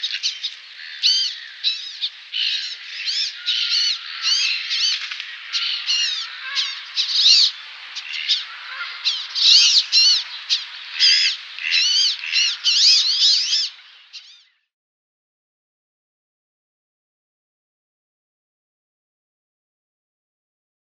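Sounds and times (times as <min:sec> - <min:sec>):
male Wood Duck display call: 0:00.1 - 0:14.5.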